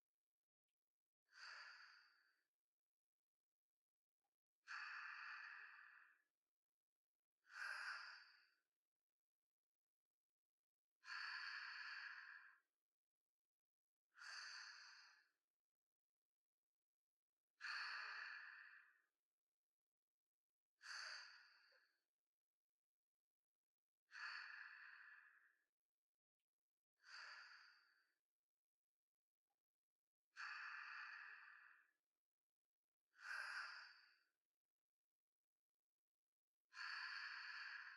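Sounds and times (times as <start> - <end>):
sleep breathing ASMR: 1.4 - 2.3, 4.7 - 6.2, 7.5 - 8.6, 11.0 - 12.6, 14.2 - 15.3, 17.6 - 18.9, 24.1 - 25.4, 27.0 - 28.0, 30.4 - 31.9, 33.2 - 34.3, 36.8 - 37.9.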